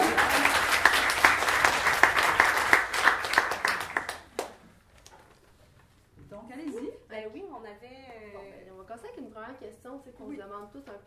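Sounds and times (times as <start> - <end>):
crowd applauding: 0.0 - 4.6.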